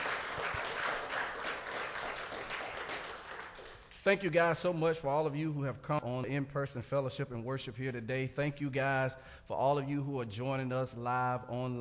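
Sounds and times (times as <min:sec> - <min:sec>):
crowd audience clapping hands: 0:00.0 - 0:04.2
speech: 0:04.0 - 0:11.7.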